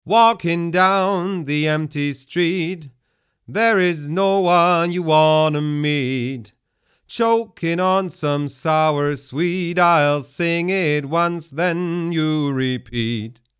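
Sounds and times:
man singing: 0.0 - 13.5.

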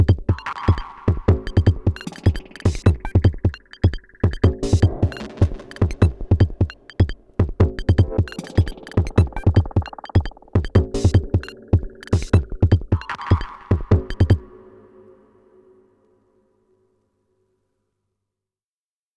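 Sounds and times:
Korg drumlogue drum machine beat: 0.0 - 14.4.

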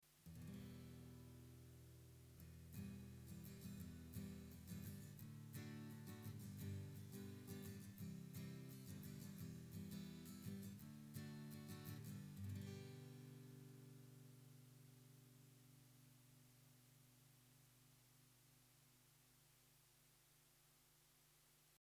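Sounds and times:
acoustic guitar strumming: 0.3 - 15.4.

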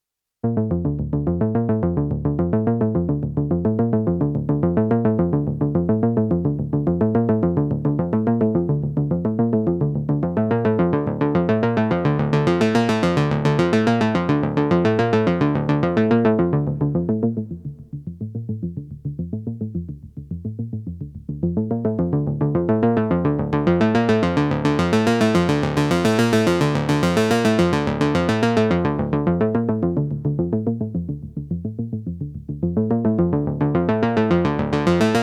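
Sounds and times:
Juno 60 arpeggio with Dimension D: 0.5 - 20.7, 21.4 - 35.2.

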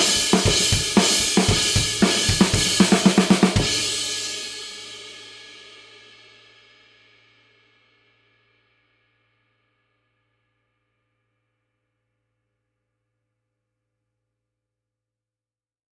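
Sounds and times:
traditional medium crash cymbal: 0.0 - 6.1.

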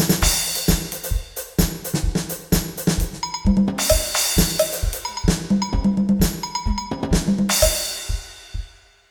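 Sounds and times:
percussion: 0.1 - 8.9.

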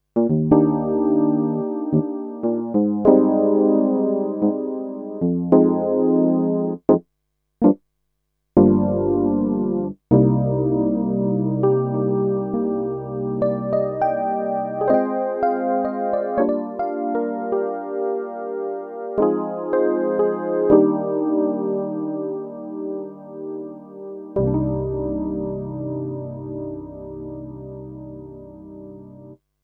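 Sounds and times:
Alesis Concert electric piano: 0.2 - 7.0, 8.6 - 29.4.

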